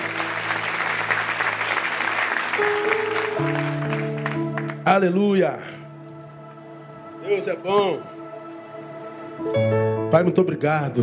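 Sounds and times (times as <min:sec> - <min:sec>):
audience applauding: 0:00.0 - 0:05.2
speech: 0:04.9 - 0:05.8, 0:07.3 - 0:08.1, 0:09.4 - 0:11.0.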